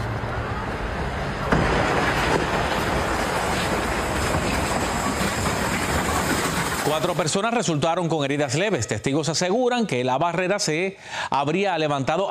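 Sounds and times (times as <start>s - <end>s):
passenger train rumbling and clattering at a railway level crossing: 0.0s - 7.4s
speech: 7.0s - 12.3s.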